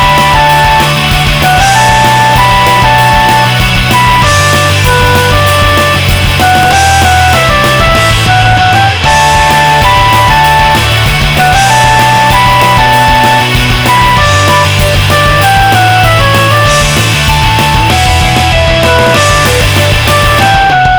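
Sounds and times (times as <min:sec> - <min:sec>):
synth melody: 0:00.0 - 0:20.6.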